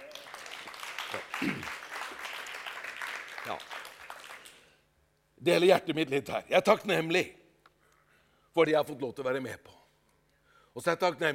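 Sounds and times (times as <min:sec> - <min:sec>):
audience applause: 0:00.0 - 0:04.6
speech: 0:03.5 - 0:03.7, 0:05.4 - 0:07.4, 0:08.6 - 0:09.8, 0:10.8 - 0:11.3.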